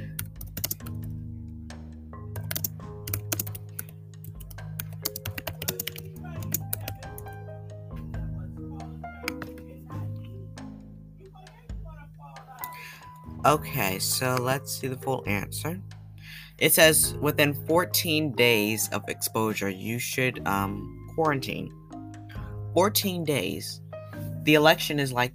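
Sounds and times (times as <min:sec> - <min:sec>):
keystrokes on a computer keyboard typing a search: 0:00.1 - 0:01.1, 0:02.4 - 0:07.4, 0:09.3 - 0:09.6
speech: 0:13.4 - 0:15.9, 0:16.6 - 0:21.8, 0:22.8 - 0:23.8, 0:24.4 - 0:25.3.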